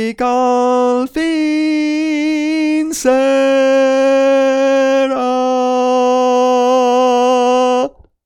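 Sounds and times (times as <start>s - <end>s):
tenor singing spiritual songs: 0.0s - 8.1s.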